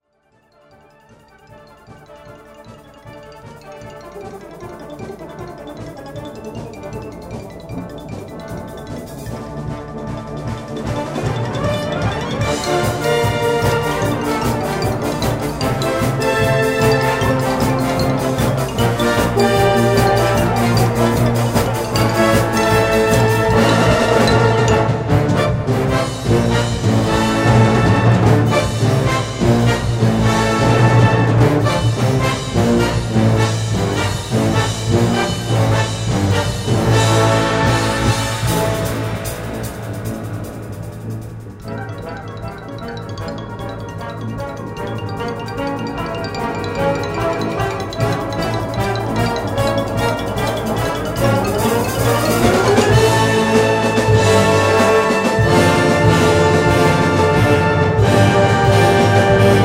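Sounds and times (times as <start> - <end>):
band playing a toccata: 0.5 - 59.6.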